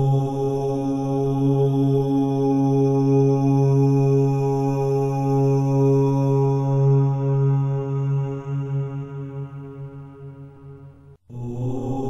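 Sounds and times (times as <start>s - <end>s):
om chanting for meditation: 0.0s - 10.7s, 11.3s - 12.0s.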